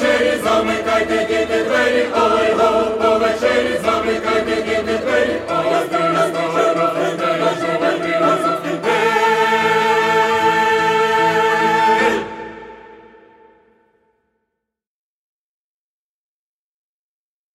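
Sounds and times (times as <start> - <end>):
instrumental music: 0.0 - 13.9.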